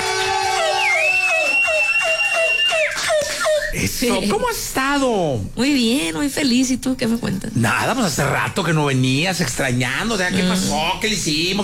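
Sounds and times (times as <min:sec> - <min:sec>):
audience applause: 0:00.0 - 0:03.4
speech: 0:04.0 - 0:11.6.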